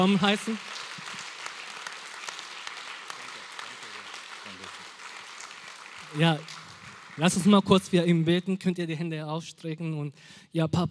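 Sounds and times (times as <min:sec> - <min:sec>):
speech: 0:00.0 - 0:00.8, 0:06.1 - 0:06.6, 0:07.2 - 0:10.8
crowd applause: 0:00.0 - 0:08.0.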